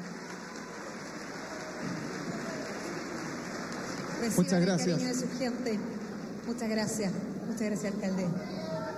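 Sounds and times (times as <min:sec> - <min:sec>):
audience applause: 0:00.0 - 0:05.6
speech: 0:04.2 - 0:08.8.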